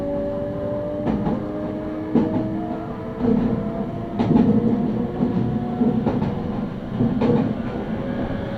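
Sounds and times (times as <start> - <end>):
Meitetsu train running on the Inuyama and Hiromi lines: 0.1 - 8.5.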